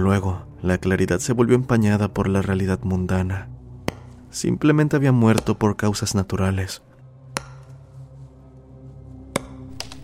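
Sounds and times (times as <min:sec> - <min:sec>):
speech: 0:00.0 - 0:03.6, 0:04.3 - 0:06.9
wood cracking: 0:09.4 - 0:10.0.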